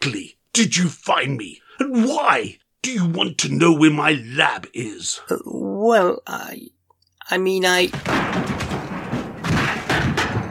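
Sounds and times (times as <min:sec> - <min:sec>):
speech: 0:00.0 - 0:09.0
sofa crashing against a wall: 0:07.9 - 0:10.4.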